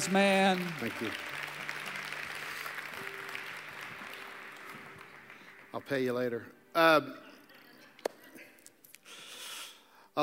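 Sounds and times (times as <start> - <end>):
speech: 0.0 - 1.4, 5.8 - 7.3
audience applause: 0.0 - 6.4.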